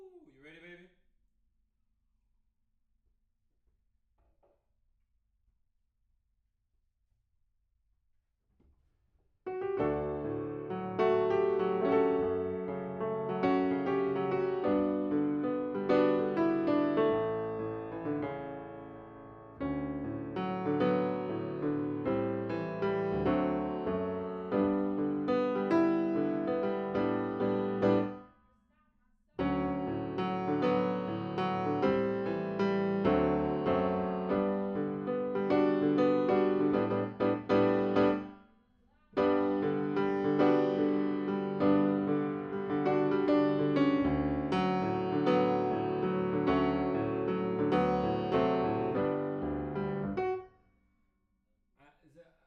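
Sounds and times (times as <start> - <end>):
piano: 9.5 - 28.3, 29.4 - 38.4, 39.1 - 50.5.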